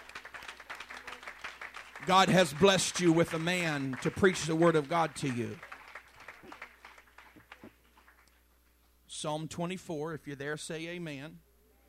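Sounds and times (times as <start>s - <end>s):
audience hand clapping: 0.0s - 8.4s
speech: 2.0s - 5.7s, 9.2s - 11.5s.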